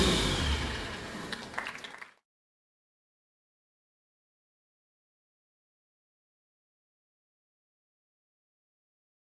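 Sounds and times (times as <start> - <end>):
Porsche 961 engine: 0.0 - 1.8.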